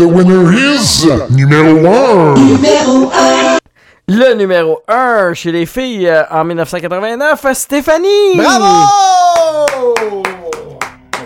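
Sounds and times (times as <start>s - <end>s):
speech: 0.0s - 3.4s, 4.1s - 10.3s
one person clapping hands: 9.4s - 11.2s.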